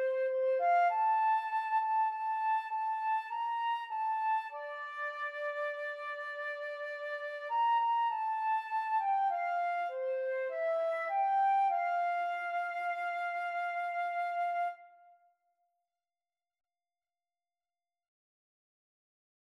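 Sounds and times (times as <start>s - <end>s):
flute and clarinet duet: 0.0s - 15.0s.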